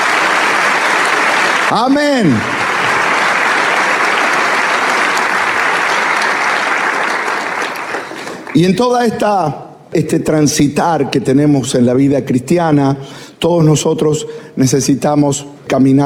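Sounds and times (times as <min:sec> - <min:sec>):
church audience applause: 0:00.0 - 0:08.7
speech: 0:01.7 - 0:02.6, 0:08.5 - 0:16.0.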